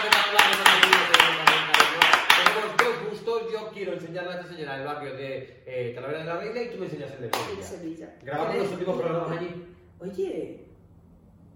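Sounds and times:
group rhythmic applause: 0.0s - 3.3s
speech: 4.0s - 10.7s.

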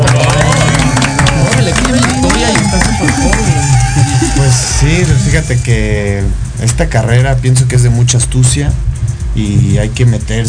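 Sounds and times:
audience applause: 0.0s - 5.0s
murmur of crowd voices: 0.0s - 5.6s
music: 0.0s - 10.4s
speech: 5.3s - 10.4s.

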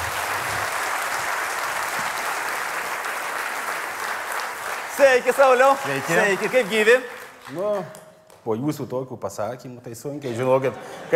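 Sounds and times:
audience applause welcoming a guest onto the stage: 0.0s - 8.0s
speech: 5.0s - 11.1s.

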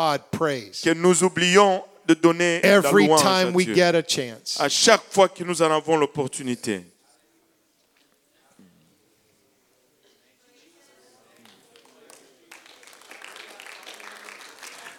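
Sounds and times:
speech: 0.0s - 6.9s
audience hand clapping: 11.4s - 14.9s.

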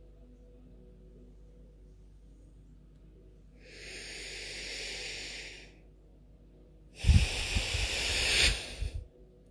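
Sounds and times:
deep breaths in and out: 3.6s - 5.9s, 7.0s - 9.2s.

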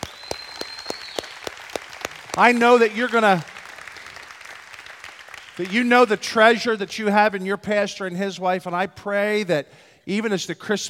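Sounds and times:
audience hands clapping: 0.0s - 7.0s
speech: 2.4s - 3.5s, 5.6s - 10.8s.

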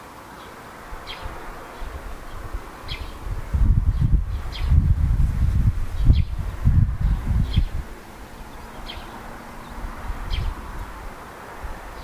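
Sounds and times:
birds chirping: 0.0s - 5.1s, 5.9s - 12.0s
soft steady hiss: 0.0s - 12.0s
low rumbling rustling: 1.8s - 11.2s.

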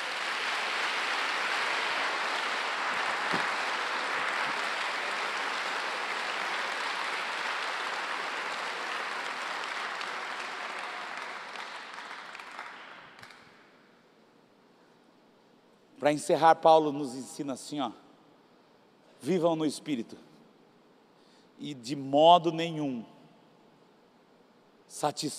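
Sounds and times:
audience applauding: 0.0s - 13.6s
speech: 16.0s - 18.0s, 19.2s - 20.3s, 21.6s - 23.1s, 24.9s - 25.3s.

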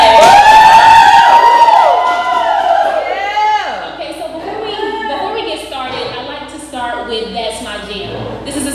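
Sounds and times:
audience cheering and whooping: 0.0s - 5.3s.

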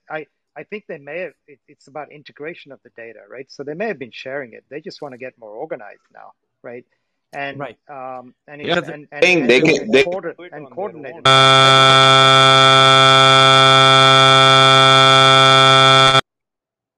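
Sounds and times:
speech: 0.1s - 14.0s
laughter: 8.6s - 11.3s
phone call alert buzzing: 11.2s - 16.2s.

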